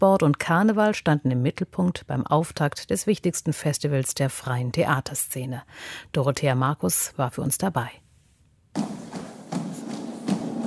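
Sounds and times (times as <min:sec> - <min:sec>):
speech: 0:00.0 - 0:08.0, 0:08.7 - 0:09.0
female carnival dance guard of Düsseldorf stamping in military lockstep: 0:08.8 - 0:10.6.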